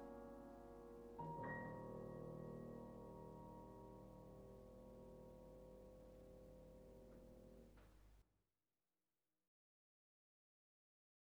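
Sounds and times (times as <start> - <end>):
solo piano: 0.0 - 8.0.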